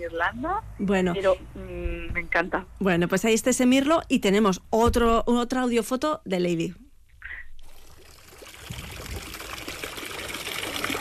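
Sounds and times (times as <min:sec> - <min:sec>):
speech: 0:00.0 - 0:06.8
water splashing in a fountain: 0:07.6 - 0:10.9.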